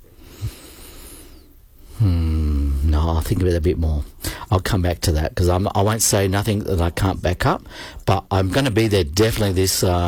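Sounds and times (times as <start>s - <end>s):
person breathing in and out: 0.0s - 2.8s, 4.2s - 4.5s, 7.6s - 8.0s
speech: 3.0s - 10.0s.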